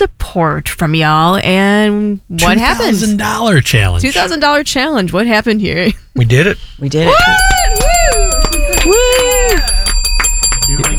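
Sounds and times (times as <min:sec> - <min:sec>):
speech: 0:00.0 - 0:07.9
sliding whooping tones: 0:07.1 - 0:10.0
celebratory bells ringing: 0:07.1 - 0:10.9.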